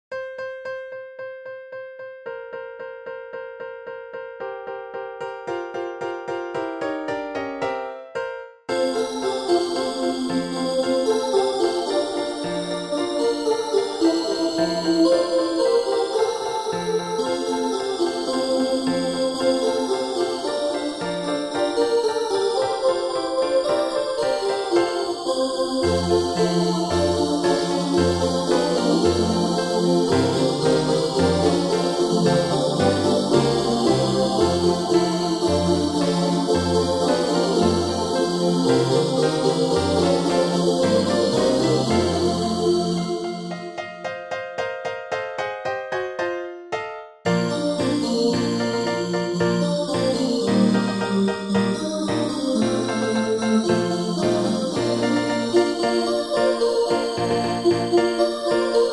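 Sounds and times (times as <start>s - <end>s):
Christmas song: 0.1s - 58.9s.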